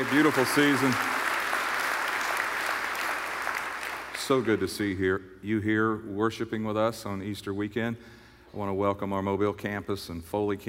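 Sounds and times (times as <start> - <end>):
speech: 0.0 - 1.1, 4.3 - 10.6
church congregation applauding on Easter morning: 0.0 - 4.7.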